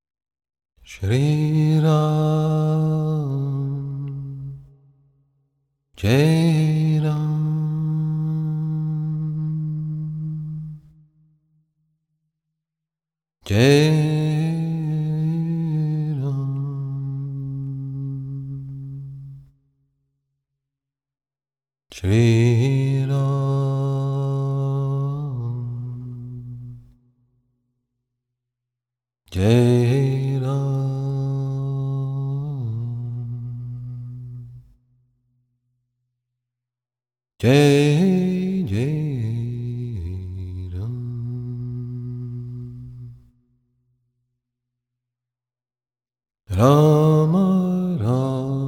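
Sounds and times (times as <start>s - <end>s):
devotional bhajan: 0.8s - 4.9s, 6.0s - 11.0s, 13.4s - 19.5s, 21.9s - 27.0s, 29.3s - 34.8s, 37.4s - 43.3s, 46.5s - 48.6s.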